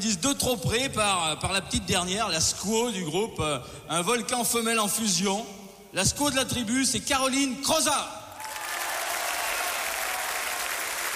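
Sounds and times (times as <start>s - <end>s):
speech: 0.0s - 8.2s
audience applause: 8.4s - 11.1s.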